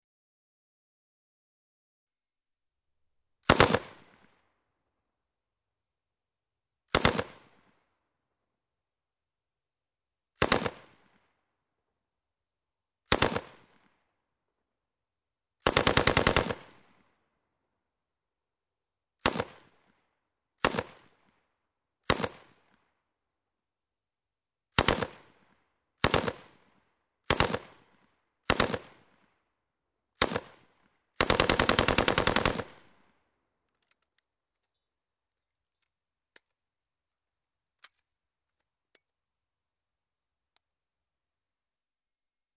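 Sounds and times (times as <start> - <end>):
automatic rifle crossfire: 3.4 - 4.2, 6.9 - 7.5, 10.4 - 10.9, 13.1 - 13.6, 15.6 - 16.8, 22.0 - 22.5, 24.8 - 25.3, 26.0 - 26.6, 27.2 - 29.1, 30.2 - 33.0.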